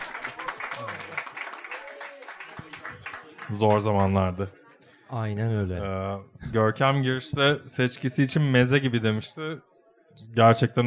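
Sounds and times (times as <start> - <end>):
audience applause: 0.0 - 4.2
faint voices murmuring: 0.0 - 10.8
speech: 3.5 - 10.8.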